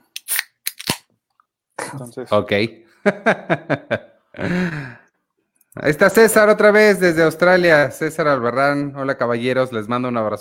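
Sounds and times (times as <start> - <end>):
plastic water bottle cap seal cracking as it is twisted open: 0.0 - 1.1
speech: 1.9 - 5.0, 5.8 - 10.3.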